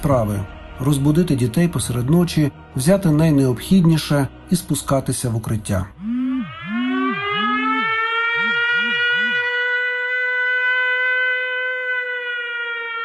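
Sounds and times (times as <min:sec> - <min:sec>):
speech: 0:00.0 - 0:06.0
air raid siren wailing: 0:06.0 - 0:13.0.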